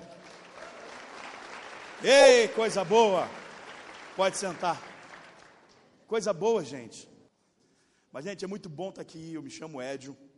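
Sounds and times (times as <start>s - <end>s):
audience applauding: 0.0s - 5.8s
speech: 2.0s - 3.4s, 4.2s - 4.9s, 6.1s - 7.1s, 8.1s - 10.2s.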